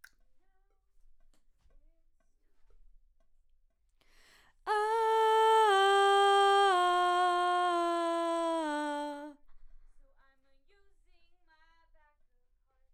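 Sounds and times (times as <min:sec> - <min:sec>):
background vocals: 0:04.7 - 0:09.4.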